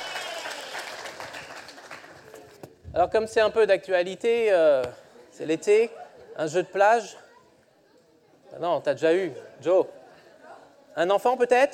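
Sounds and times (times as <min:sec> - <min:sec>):
audience clapping for a child at a summer gathering: 0:00.0 - 0:02.6
speech: 0:03.0 - 0:07.2, 0:08.5 - 0:10.0, 0:11.0 - 0:11.7.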